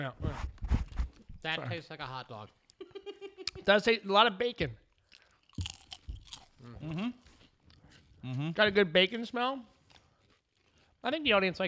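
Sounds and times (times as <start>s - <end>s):
speech: 1.4s - 2.6s, 3.6s - 4.8s, 6.6s - 7.2s, 8.2s - 9.7s, 11.0s - 11.6s
potato chips crunching: 4.9s - 8.0s.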